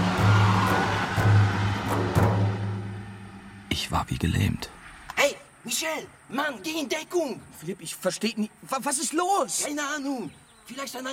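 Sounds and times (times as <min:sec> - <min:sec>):
car speeding away: 0:00.0 - 0:05.1
speech: 0:03.8 - 0:11.1.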